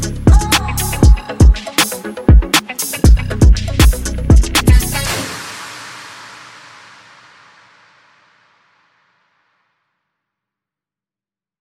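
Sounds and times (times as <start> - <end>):
instrumental beat: 0.0 - 5.6.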